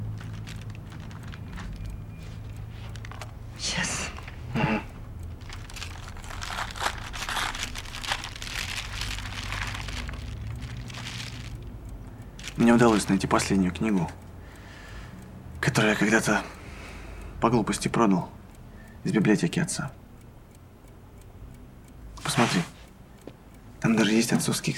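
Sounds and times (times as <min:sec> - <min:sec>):
plastic bag crinkling as it is set down on a table: 0:00.0 - 0:11.7, 0:12.4 - 0:13.7
speech: 0:12.7 - 0:14.2, 0:15.8 - 0:16.6, 0:17.4 - 0:18.4, 0:19.0 - 0:20.0, 0:22.5 - 0:22.7, 0:23.9 - 0:24.7.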